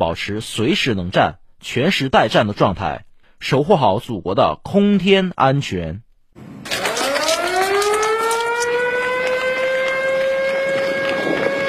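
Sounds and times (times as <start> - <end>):
speech: 0.0 - 6.0
alarm siren: 6.6 - 11.6.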